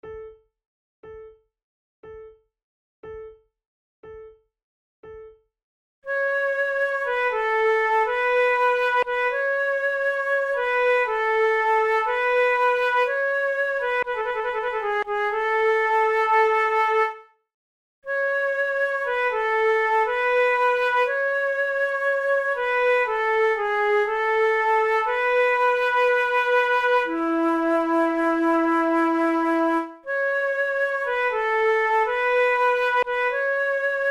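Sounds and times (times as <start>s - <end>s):
two flutes playing a sarabande: 6.1s - 17.2s, 18.1s - 34.0s.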